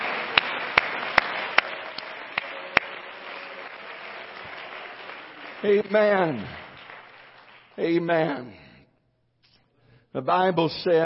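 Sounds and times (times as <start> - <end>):
audience clapping hands: 0.0 - 8.6
speech: 5.6 - 6.6, 7.8 - 8.6, 10.1 - 11.0.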